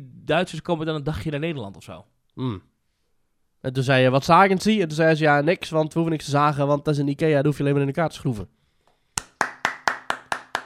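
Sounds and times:
speech: 0:00.3 - 0:02.7, 0:03.6 - 0:08.6
audience applause: 0:09.3 - 0:10.6.

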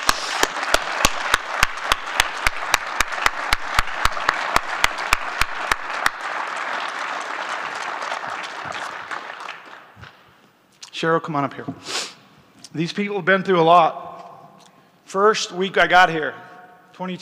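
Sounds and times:
audience applause: 0:00.0 - 0:10.0
speech: 0:11.0 - 0:12.0, 0:12.7 - 0:14.1, 0:15.1 - 0:16.4, 0:17.0 - 0:17.2.

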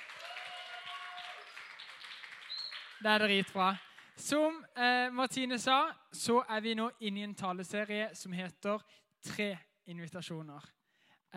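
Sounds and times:
audience applause: 0:00.0 - 0:04.2
speech: 0:03.0 - 0:11.3.

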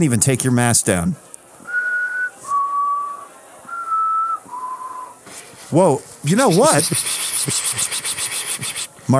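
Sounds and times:
speech: 0:00.0 - 0:01.3, 0:05.7 - 0:08.1
person whistling a chickadee call: 0:01.7 - 0:05.2.

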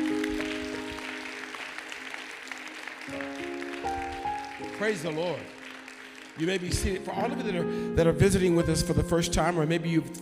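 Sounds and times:
audience clapping hands: 0:00.0 - 0:07.5
speech: 0:04.8 - 0:05.6, 0:06.4 - 0:10.2.

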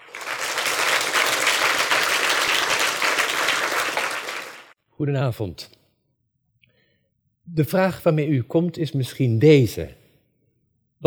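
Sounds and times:
audience applause welcoming a speaker: 0:00.0 - 0:04.7
speech: 0:05.0 - 0:05.8, 0:07.5 - 0:10.0.

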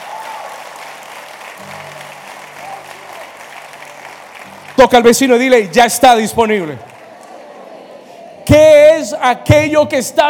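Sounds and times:
audience applauding: 0:00.0 - 0:08.2
speech: 0:01.6 - 0:02.1, 0:04.8 - 0:06.9, 0:08.5 - 0:10.2.

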